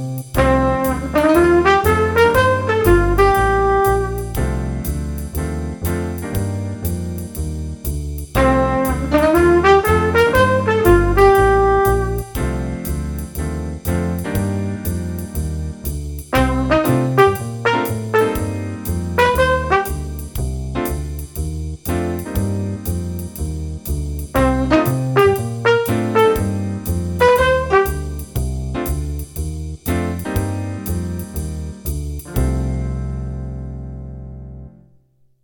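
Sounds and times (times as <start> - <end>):
jazz improvisation in C minor: 0.0 - 34.8
trumpet: 0.4 - 4.8, 8.4 - 12.9, 16.3 - 20.4, 24.3 - 28.4.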